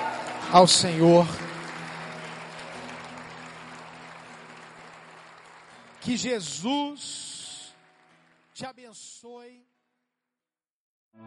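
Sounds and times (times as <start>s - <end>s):
audience applause: 0.0s - 9.2s
speech: 0.5s - 1.4s, 6.0s - 7.3s, 8.6s - 9.7s.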